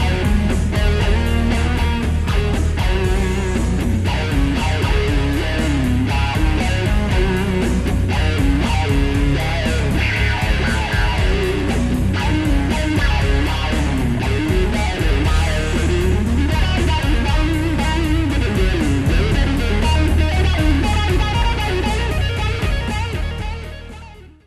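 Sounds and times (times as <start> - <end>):
band pass filtered sound with heavy overdrive: 0.0 - 24.2.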